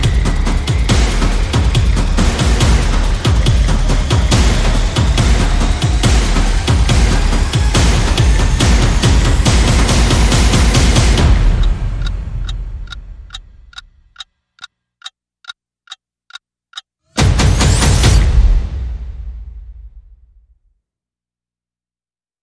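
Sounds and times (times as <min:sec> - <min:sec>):
percussion: 0:00.0 - 0:13.8, 0:17.2 - 0:19.8.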